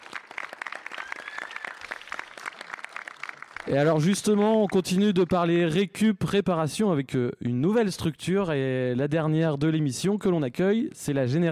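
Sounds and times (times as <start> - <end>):
audience applause: 0.0 - 5.4
speech: 3.6 - 11.4.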